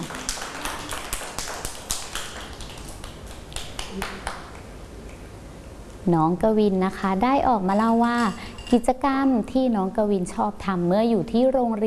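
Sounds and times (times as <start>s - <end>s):
children clapping: 0.0s - 4.7s
speech: 6.1s - 11.8s.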